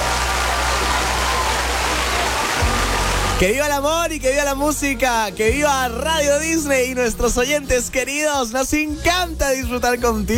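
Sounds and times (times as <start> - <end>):
applause: 0.0 - 3.5
speech: 3.4 - 10.3.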